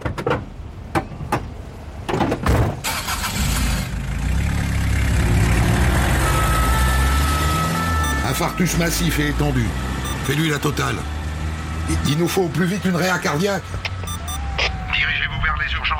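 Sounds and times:
knocks and thuds: 0:00.0 - 0:02.8
ambulance engine starting and driving off: 0:02.8 - 0:15.1
speech: 0:08.6 - 0:11.2, 0:11.9 - 0:13.9.

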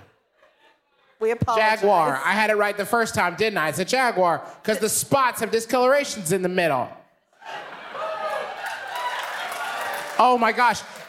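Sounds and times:
speech: 0:01.2 - 0:07.6, 0:10.2 - 0:11.0
people cheering: 0:07.4 - 0:11.0
small group applauding: 0:07.4 - 0:11.0.

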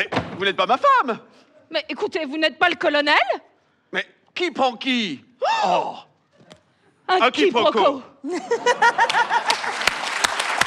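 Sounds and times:
speech: 0:00.0 - 0:06.1, 0:07.1 - 0:09.8
laughter: 0:08.2 - 0:10.0
audience applause: 0:08.9 - 0:10.6.

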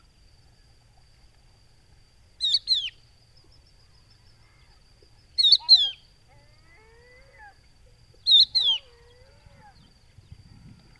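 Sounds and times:
Crested lark calling: 0:08.3 - 0:08.9.

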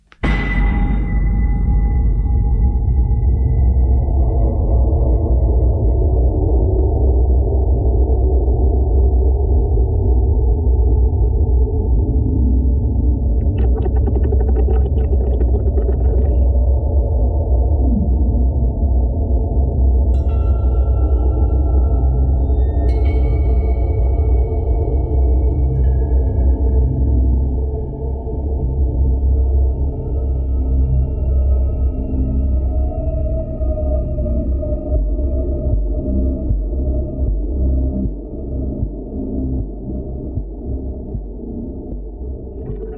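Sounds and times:
video game music dark rumbling low drone: 0:00.2 - 0:42.9.

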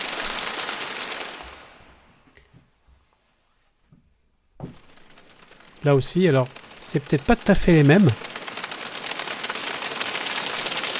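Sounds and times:
group applause: 0:00.0 - 0:01.8, 0:05.8 - 0:10.9
speech: 0:05.8 - 0:08.3.

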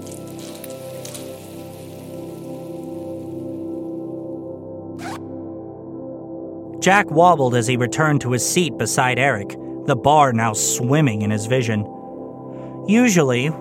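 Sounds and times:
urine spraying into a urinal: 0:00.0 - 0:03.9
zipper: 0:05.0 - 0:05.3
speech: 0:06.8 - 0:12.0, 0:12.9 - 0:13.5.

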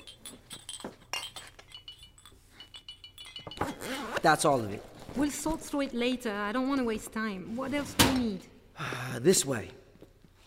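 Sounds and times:
glass jars clinking while being packed: 0:00.0 - 0:04.2
speech: 0:04.2 - 0:09.8.

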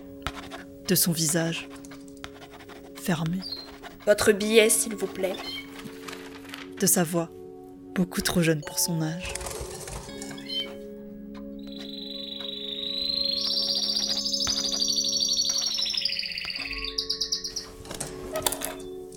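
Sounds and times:
speech: 0:00.9 - 0:01.8, 0:03.1 - 0:05.6, 0:06.8 - 0:07.4, 0:08.0 - 0:09.5
bird chirping: 0:03.4 - 0:03.8, 0:05.3 - 0:05.8, 0:10.2 - 0:10.8, 0:11.5 - 0:17.8.

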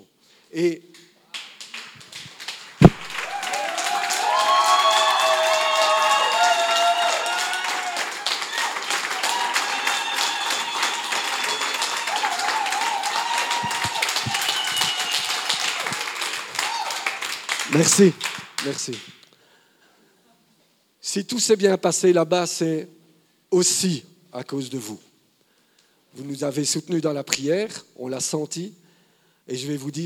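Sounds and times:
speech: 0:00.5 - 0:01.0, 0:17.8 - 0:19.2, 0:21.2 - 0:25.1, 0:26.1 - 0:28.8, 0:29.5 - 0:30.0
church congregation standing and applauding: 0:01.3 - 0:19.1.

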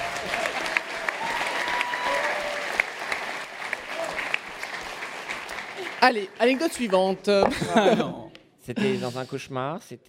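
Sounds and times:
audience applauding: 0:00.0 - 0:07.4
speech: 0:06.0 - 0:10.0
laughter: 0:07.4 - 0:09.2.

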